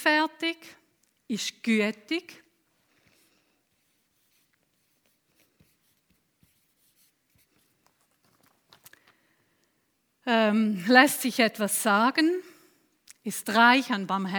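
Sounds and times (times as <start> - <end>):
speech: 0.0 - 2.4, 10.3 - 12.5, 13.2 - 14.3
handwriting a word: 3.0 - 8.5.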